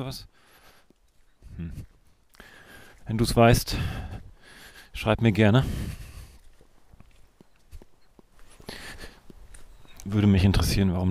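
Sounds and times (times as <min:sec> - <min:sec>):
speech: 0:00.0 - 0:00.4, 0:01.6 - 0:01.9, 0:03.1 - 0:04.2, 0:05.0 - 0:06.0, 0:10.0 - 0:11.0
footsteps crunching at night along a forest ridge in the Schwarze Berge: 0:00.0 - 0:11.0.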